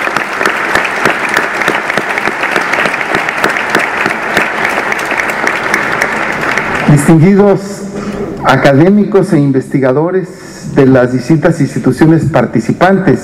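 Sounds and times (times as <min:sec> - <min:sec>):
audience applause: 0:00.0 - 0:07.5
speech: 0:06.9 - 0:07.8, 0:08.4 - 0:13.2.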